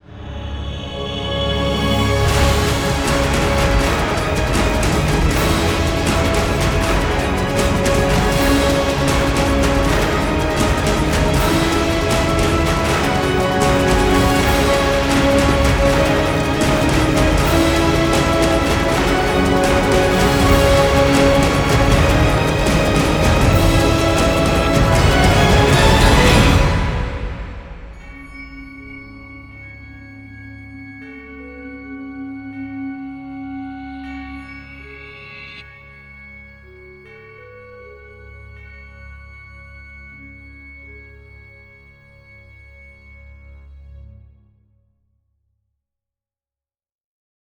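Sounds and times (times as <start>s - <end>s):
alternate ending without choir: 1.5s - 28.3s.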